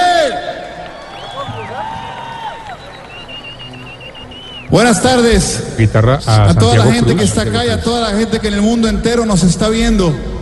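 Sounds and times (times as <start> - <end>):
concert crowd cheering and applauding: 0.0 - 5.4
high whistles: 0.8 - 5.0
speech: 4.7 - 10.3.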